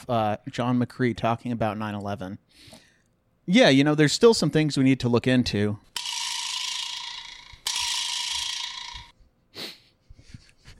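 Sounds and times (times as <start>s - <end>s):
speech: 0.0s - 2.8s, 3.5s - 5.9s
vibraslap rattle: 5.9s - 9.2s.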